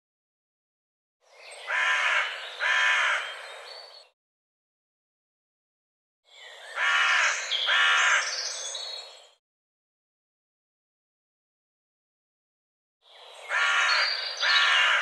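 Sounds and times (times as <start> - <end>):
bird giving harsh crow-like caws: 1.7 - 3.4, 6.8 - 8.3, 13.5 - 14.9.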